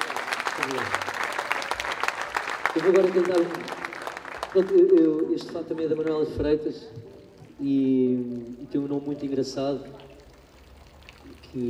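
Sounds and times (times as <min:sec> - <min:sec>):
audience applause for a fado singer at a concert: 0:00.0 - 0:06.4
speech: 0:00.6 - 0:01.2, 0:02.8 - 0:03.8, 0:04.5 - 0:10.0.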